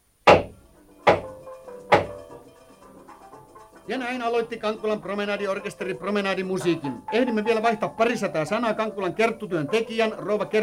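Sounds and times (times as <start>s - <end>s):
handyman hammering the last nails into a stage platform: 0.3s - 2.2s
speech: 3.9s - 10.6s.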